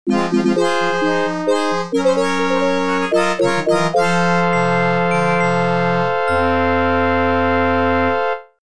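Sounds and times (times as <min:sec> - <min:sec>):
game over sound: 0:00.1 - 0:07.3.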